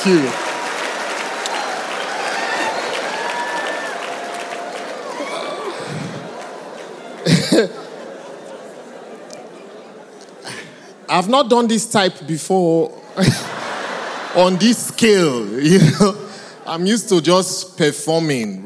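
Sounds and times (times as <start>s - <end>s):
speech: 0.0s - 0.4s, 7.6s - 7.8s, 11.2s - 13.5s, 14.4s - 18.6s
audience applause: 0.0s - 9.6s
laughter: 4.6s - 11.1s, 13.0s - 17.3s.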